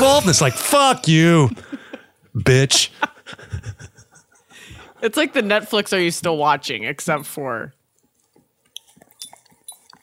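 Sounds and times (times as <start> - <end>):
speech: 0.0 - 1.8, 2.4 - 3.1, 5.0 - 7.8
laughter: 2.7 - 4.8
dog licking a microphone: 8.2 - 10.0.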